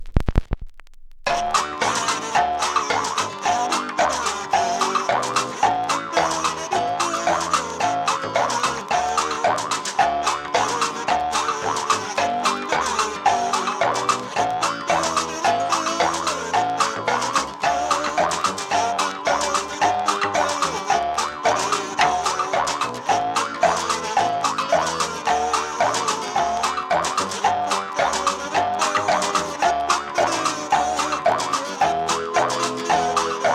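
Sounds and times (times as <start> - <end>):
kazoo: 1.3 - 33.5.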